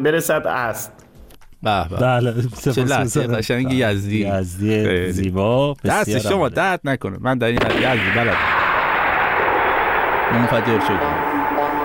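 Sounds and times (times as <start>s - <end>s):
speech: 0.0s - 8.5s, 10.3s - 11.3s
loud sustained explosion-like rumble: 7.6s - 11.8s.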